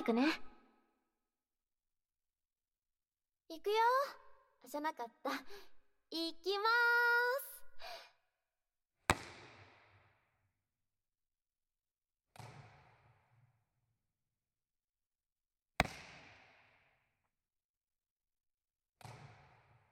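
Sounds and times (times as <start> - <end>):
speech: 0.1 - 0.5, 3.5 - 7.2
ball thrown and caught in a game of catch between volleyball players: 9.1 - 9.9, 15.8 - 16.4.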